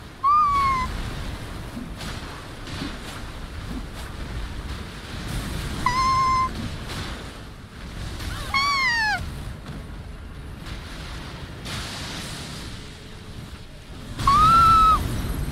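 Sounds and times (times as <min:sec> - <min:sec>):
hopeful noises: 0:00.0 - 0:00.9, 0:05.8 - 0:06.5, 0:08.3 - 0:09.2, 0:14.2 - 0:15.0.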